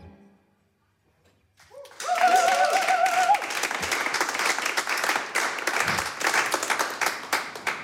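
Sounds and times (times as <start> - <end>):
audience applause: 1.6 - 7.8.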